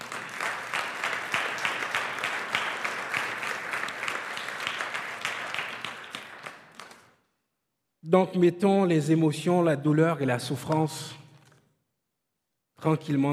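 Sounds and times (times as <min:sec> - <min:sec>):
audience applause: 0:00.0 - 0:07.2
speech: 0:08.1 - 0:11.2, 0:12.8 - 0:13.3.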